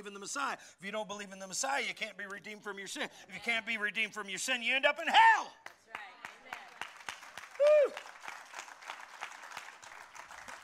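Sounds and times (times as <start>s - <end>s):
speech: 0.0s - 6.0s
church congregation clapping and applauding after a line in a sermon: 5.6s - 10.6s.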